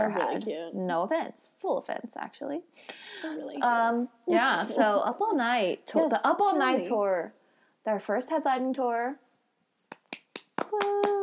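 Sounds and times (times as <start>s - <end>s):
speech: 0.0s - 9.2s
hand clapping: 9.8s - 11.2s.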